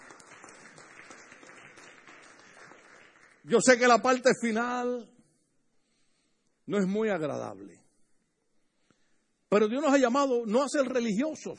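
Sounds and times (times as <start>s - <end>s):
audience applause: 0.0s - 3.6s
speech: 3.4s - 5.2s, 6.7s - 7.8s, 9.5s - 11.5s.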